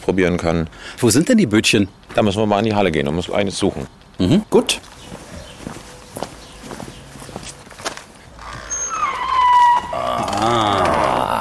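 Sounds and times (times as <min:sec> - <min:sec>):
speech: 0:00.1 - 0:05.0
old wood creaking in a boatyard hall: 0:03.7 - 0:11.3
footsteps on the floor: 0:04.8 - 0:08.7.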